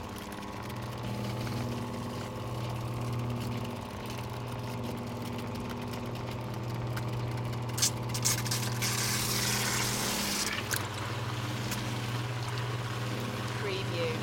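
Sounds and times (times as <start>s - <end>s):
water pump running: 0.0s - 14.2s.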